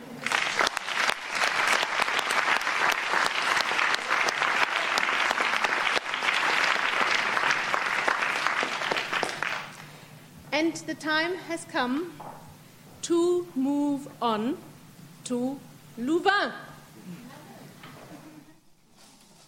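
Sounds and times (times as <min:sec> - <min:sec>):
sustained audience applause: 0:00.0 - 0:09.9
speech: 0:10.6 - 0:12.2, 0:13.1 - 0:14.7, 0:15.3 - 0:17.2.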